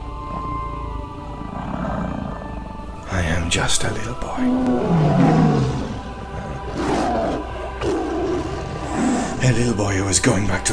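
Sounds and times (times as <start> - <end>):
creature growling: 1.3 - 3.2, 4.2 - 9.5
speech: 3.5 - 5.8, 9.5 - 10.7.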